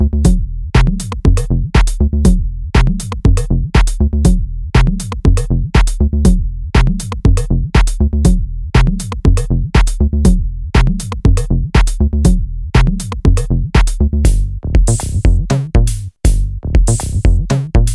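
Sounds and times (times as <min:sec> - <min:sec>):
techno bass loops: 0:00.0 - 0:17.9.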